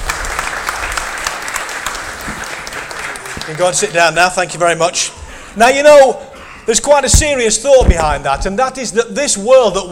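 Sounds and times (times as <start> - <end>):
audience applause: 0.0 - 4.6
speech: 3.5 - 9.9.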